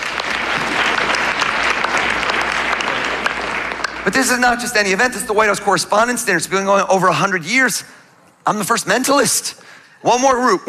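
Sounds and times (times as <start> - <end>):
audience applause: 0.0 - 4.6
speech: 4.0 - 10.6.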